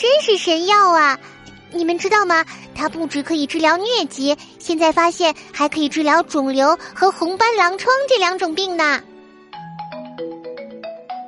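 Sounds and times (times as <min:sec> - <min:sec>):
speech: 0:00.2 - 0:09.1
phone ringtone: 0:09.5 - 0:11.2.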